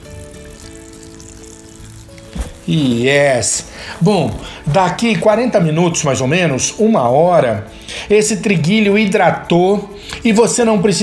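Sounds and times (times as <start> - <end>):
filtered water pouring into a bowl: 0.0 - 5.4
speech: 2.7 - 11.0.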